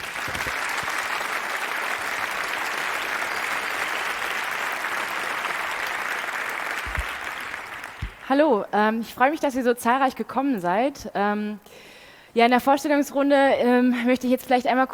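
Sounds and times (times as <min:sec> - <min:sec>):
audience applause: 0:00.0 - 0:08.3
speech: 0:08.3 - 0:14.9.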